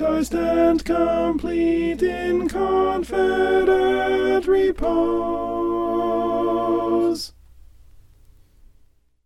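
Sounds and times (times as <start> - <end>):
alto voice singing: 0.0 - 7.4.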